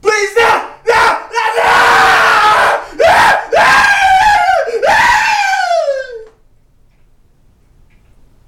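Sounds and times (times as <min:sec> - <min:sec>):
person screaming: 0:00.1 - 0:06.3.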